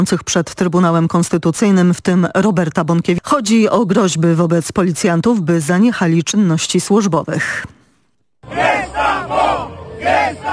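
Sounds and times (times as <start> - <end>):
speech: 0.0 - 7.8
agitated crowd of protesters shouting: 8.4 - 10.5.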